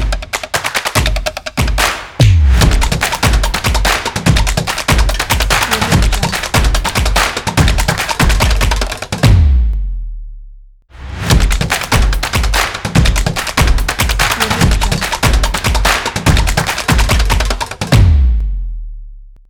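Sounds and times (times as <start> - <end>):
fast chase percussion logo: 0.0 - 9.8, 11.0 - 18.5.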